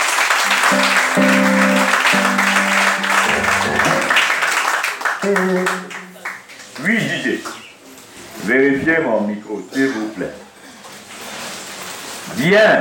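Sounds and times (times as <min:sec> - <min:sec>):
audience applauding loudly: 0:00.0 - 0:07.6
speech: 0:05.2 - 0:05.9, 0:08.5 - 0:10.4, 0:12.4 - 0:12.8.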